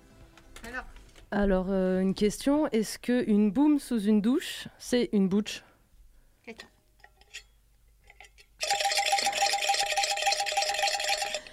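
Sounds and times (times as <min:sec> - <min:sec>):
speech: 0:00.7 - 0:05.7, 0:06.5 - 0:06.7
game show jingle: 0:08.6 - 0:11.5.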